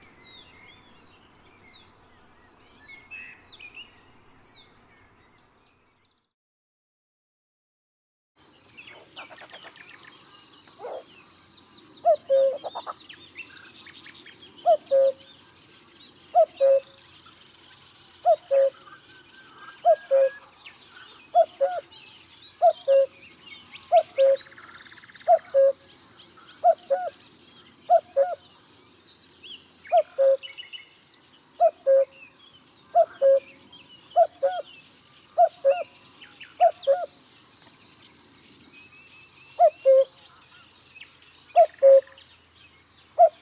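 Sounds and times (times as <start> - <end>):
small birds chirping: 0.0 - 6.3, 8.4 - 43.4
cuckoo calling: 12.0 - 12.9, 14.6 - 15.3, 16.4 - 16.9, 18.2 - 18.8, 19.8 - 20.5, 21.3 - 21.9, 22.6 - 23.2, 23.8 - 24.5, 25.2 - 25.8, 26.6 - 27.2, 27.9 - 28.4, 29.9 - 30.6, 31.6 - 32.2, 32.9 - 33.6, 34.2 - 34.7, 35.4 - 36.0, 36.6 - 37.2, 39.6 - 40.2, 41.5 - 42.2, 43.2 - 43.4.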